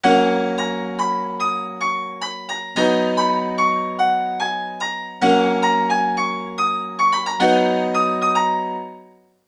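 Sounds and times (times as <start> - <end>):
keyboard music: 0.0 - 9.1.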